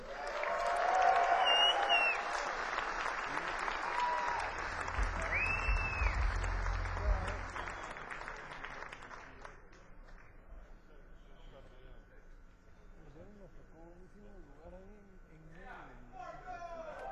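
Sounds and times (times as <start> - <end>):
whistles and scattered cheers: 0.0 - 2.7, 3.4 - 8.3
crowd applauding band on stage: 0.0 - 10.4
low rumble: 4.4 - 7.9.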